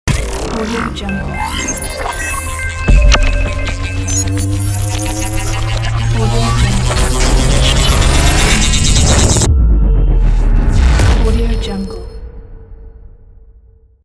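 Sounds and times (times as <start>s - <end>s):
glitchy logo sound: 0.1s - 12.2s.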